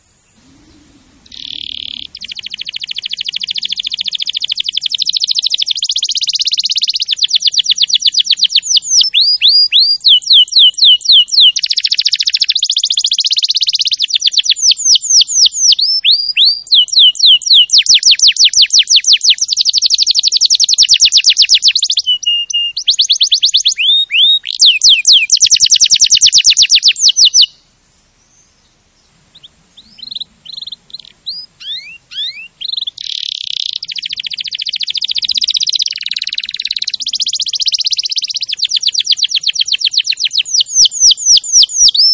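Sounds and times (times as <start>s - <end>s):
canary song: 0.0s - 42.1s.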